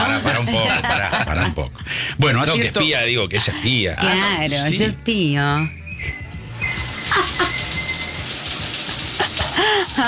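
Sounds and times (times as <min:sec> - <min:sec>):
laughter: 0:00.0 - 0:01.8, 0:07.1 - 0:07.7
speech: 0:00.5 - 0:06.2
shower water running: 0:06.5 - 0:10.0.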